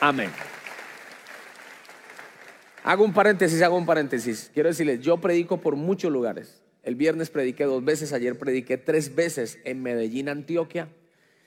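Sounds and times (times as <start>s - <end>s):
speech: 0.0s - 0.5s, 2.8s - 11.0s
congregation applauding in a church after a scripture reading: 0.0s - 4.4s.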